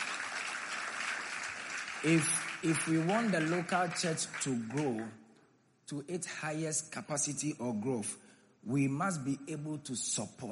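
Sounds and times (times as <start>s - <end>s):
audience clapping: 0.0s - 5.2s
speech: 2.0s - 5.2s, 5.9s - 10.5s.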